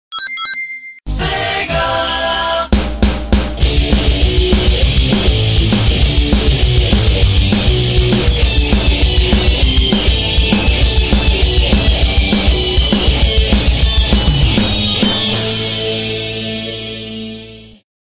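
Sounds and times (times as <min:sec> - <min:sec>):
rock intro music: 0:01.1 - 0:17.8.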